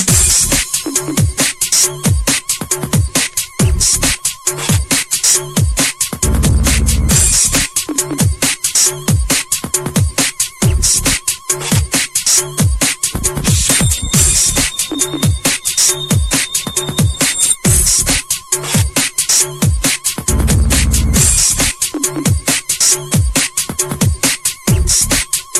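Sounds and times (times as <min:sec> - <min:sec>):
breakbeat drums: 0:00.0 - 0:25.5.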